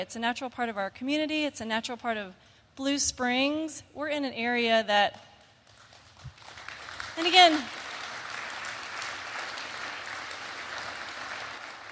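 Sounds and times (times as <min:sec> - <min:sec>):
speech: 0:00.0 - 0:05.3, 0:07.2 - 0:07.8
church congregation applauding: 0:05.7 - 0:11.9.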